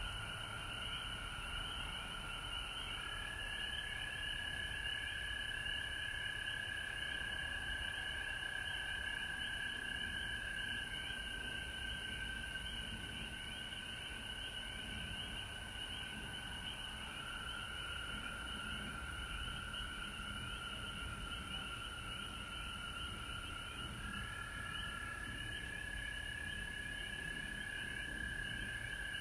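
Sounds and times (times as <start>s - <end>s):
frogs trilling: 0.0s - 29.1s.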